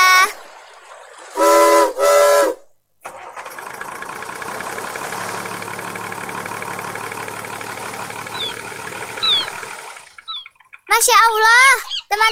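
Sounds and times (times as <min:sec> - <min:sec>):
ship engine starting up and running: 0:00.3 - 0:10.9
ship's steam whistle blasts as ship starts: 0:01.4 - 0:02.7
faint high chirps: 0:08.2 - 0:12.2
speech: 0:11.0 - 0:12.3.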